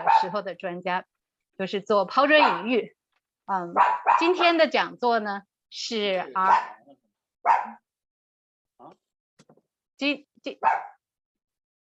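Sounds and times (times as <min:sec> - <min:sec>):
dog barking: 0:00.0 - 0:00.4, 0:02.3 - 0:02.8, 0:03.8 - 0:04.6, 0:06.4 - 0:07.9, 0:10.5 - 0:11.0
speech: 0:00.2 - 0:07.8, 0:10.0 - 0:10.9.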